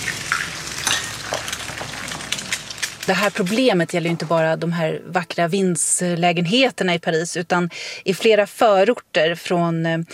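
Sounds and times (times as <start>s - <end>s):
eggs frying in a pan on a window ledge or pavement in Paris: 0.0s - 4.6s
speech: 3.1s - 10.1s.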